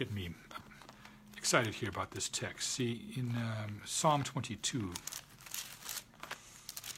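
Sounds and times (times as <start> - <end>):
thin Bible pages rustling and flipping: 0.0 - 2.3, 4.1 - 6.9
speech: 1.4 - 5.2.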